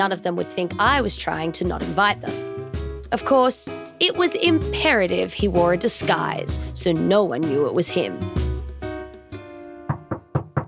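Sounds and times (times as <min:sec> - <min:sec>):
speech: 0:00.0 - 0:02.5, 0:03.1 - 0:08.5
knocking on a door: 0:09.8 - 0:10.6.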